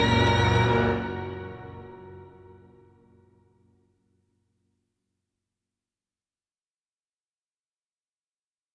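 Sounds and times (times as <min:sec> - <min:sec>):
danger ambient music: 0:00.0 - 0:03.0.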